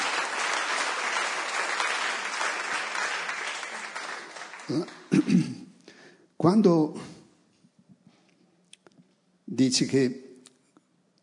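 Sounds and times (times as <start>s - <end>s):
audience applauding: 0.0s - 5.3s
speech: 4.7s - 5.6s, 6.4s - 7.1s, 9.6s - 10.2s.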